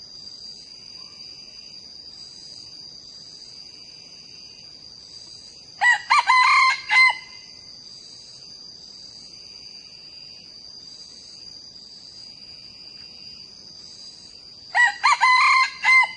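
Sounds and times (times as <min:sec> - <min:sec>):
young male red junglefowl crowing: 0:05.8 - 0:07.5, 0:14.7 - 0:16.1.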